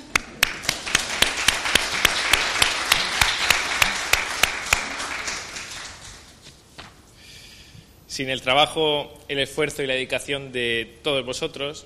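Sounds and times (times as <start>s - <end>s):
audience applause: 0.0s - 6.4s
speech: 8.2s - 11.8s.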